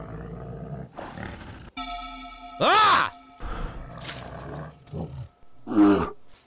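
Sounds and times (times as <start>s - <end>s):
bear roaring and growling: 0.0s - 1.7s
speech: 2.6s - 3.2s.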